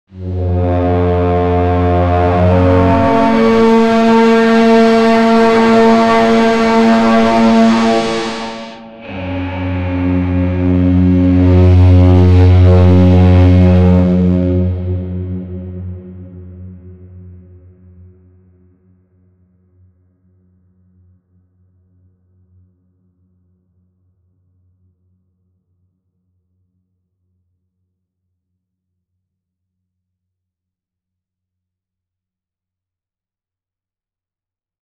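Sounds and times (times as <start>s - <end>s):
menacing deep booming: 0.2s - 17.3s.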